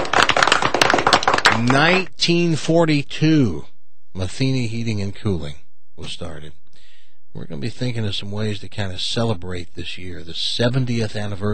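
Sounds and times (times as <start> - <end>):
applause: 0.0 - 2.1
speech: 1.6 - 6.6, 7.4 - 11.5.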